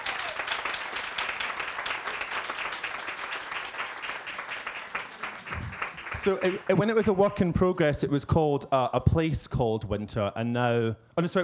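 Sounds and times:
audience applause: 0.0 - 6.9
speech: 6.2 - 11.4.

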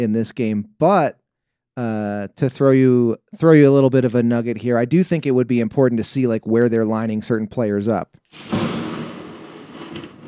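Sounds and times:
speech: 0.0 - 1.2, 1.8 - 8.7
thunder from nearby lightning: 8.3 - 10.2.

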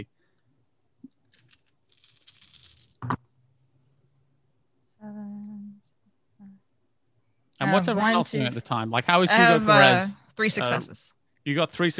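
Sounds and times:
dice being rolled: 1.1 - 3.2
speech: 7.7 - 11.9.

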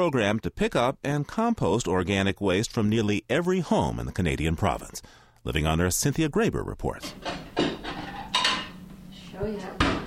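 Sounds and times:
speech: 0.0 - 7.7, 9.4 - 9.9
dishes and cutlery clattering in a breakfast dining room: 7.0 - 8.9
plates clinking and bumping: 7.0 - 10.0.

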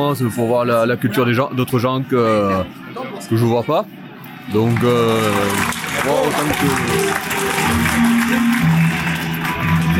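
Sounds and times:
speech: 0.0 - 8.7
audience applause: 4.5 - 9.9.

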